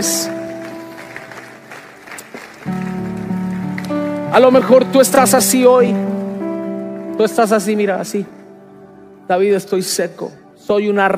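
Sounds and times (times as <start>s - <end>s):
speech: 0.0s - 0.4s, 4.4s - 6.2s, 7.2s - 8.4s, 9.3s - 11.1s
audience applauding loudly: 0.0s - 7.7s.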